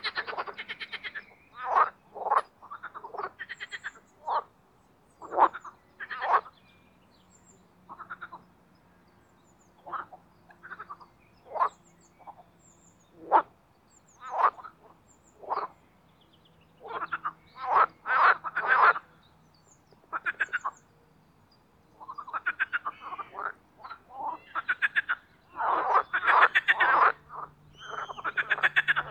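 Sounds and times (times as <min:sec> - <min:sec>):
marsh frogs croaking: 0:00.0 - 0:04.6, 0:05.2 - 0:06.6, 0:07.8 - 0:08.8, 0:09.8 - 0:12.4, 0:13.1 - 0:15.8, 0:16.8 - 0:19.3, 0:20.0 - 0:20.9, 0:22.0 - 0:29.1.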